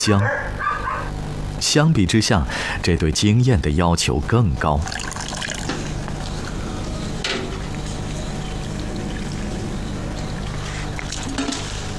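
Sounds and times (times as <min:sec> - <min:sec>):
speech: 0:00.0 - 0:00.6, 0:01.6 - 0:05.3
sour whey slurry poured into soy milk: 0:04.8 - 0:11.7.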